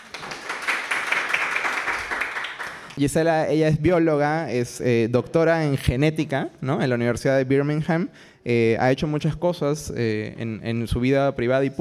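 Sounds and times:
audience applause: 0:00.0 - 0:03.0
speech: 0:03.0 - 0:11.7.

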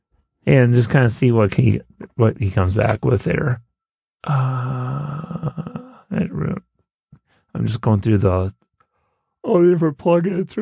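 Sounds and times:
speech: 0:00.4 - 0:03.6, 0:04.2 - 0:05.6, 0:07.6 - 0:08.6, 0:09.4 - 0:10.6
person yawning: 0:04.2 - 0:06.2.

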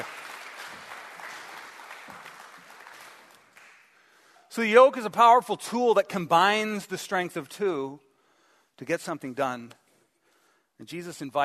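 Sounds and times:
audience applause: 0:00.0 - 0:04.0
speech: 0:04.5 - 0:08.0, 0:08.8 - 0:09.8, 0:10.8 - 0:11.4.

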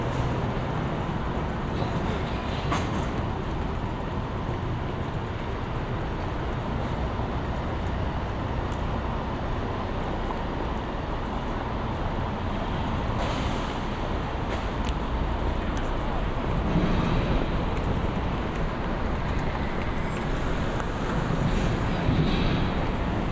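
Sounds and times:
steady dense rumble of city traffic: 0:00.0 - 0:23.3
brief bright hisses and clicks: 0:13.1 - 0:23.3.

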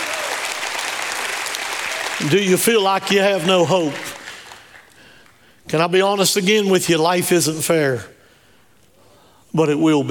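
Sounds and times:
audience applause: 0:00.0 - 0:05.0
speech: 0:02.2 - 0:04.1, 0:05.7 - 0:08.2, 0:09.5 - 0:10.1.

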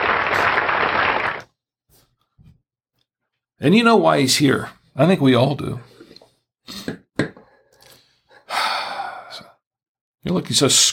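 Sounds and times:
applause: 0:00.0 - 0:01.4
speech: 0:03.6 - 0:06.0, 0:06.7 - 0:07.0, 0:10.2 - 0:10.9.

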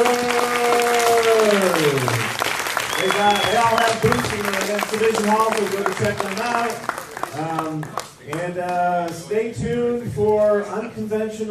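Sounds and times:
audience applause: 0:00.0 - 0:08.8
speech: 0:05.0 - 0:11.4.

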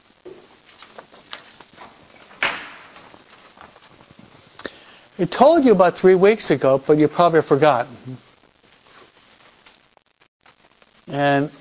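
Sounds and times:
soft footsteps and shuffling: 0:00.0 - 0:04.6, 0:08.4 - 0:10.0
door swinging shut: 0:02.4 - 0:03.0
speech: 0:05.2 - 0:08.3, 0:11.2 - 0:11.5.

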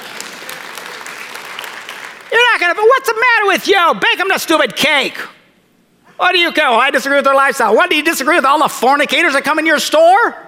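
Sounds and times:
audience applause: 0:00.0 - 0:02.6
speech: 0:02.7 - 0:05.4, 0:06.2 - 0:10.4.

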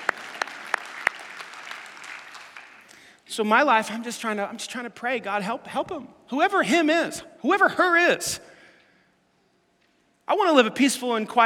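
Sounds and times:
slow clap: 0:00.0 - 0:03.1
speech: 0:03.3 - 0:08.5, 0:10.3 - 0:11.4.

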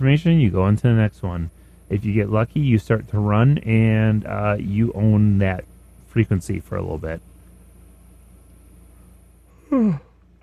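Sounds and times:
speech: 0:00.0 - 0:07.3, 0:09.7 - 0:10.1
yawn: 0:09.5 - 0:10.2.

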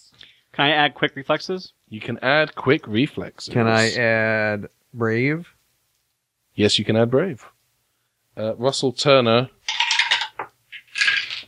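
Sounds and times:
speech: 0:00.6 - 0:05.6, 0:06.6 - 0:07.5, 0:08.4 - 0:09.6
dice rolling on a table: 0:09.6 - 0:11.4.

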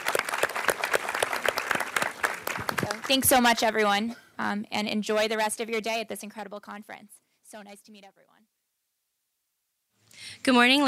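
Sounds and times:
audience applause at a conference: 0:00.0 - 0:03.5
speech: 0:03.1 - 0:08.3, 0:10.4 - 0:10.8.

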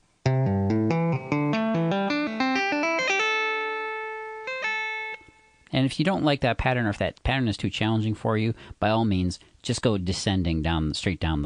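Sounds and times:
clean electric guitar lick: 0:00.2 - 0:05.7
speech: 0:05.8 - 0:11.4.

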